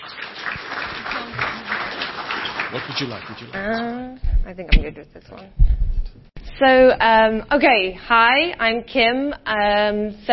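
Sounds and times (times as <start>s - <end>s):
audience applause for a speaker: 0.0s - 3.7s
speech: 2.7s - 5.8s, 6.6s - 10.3s.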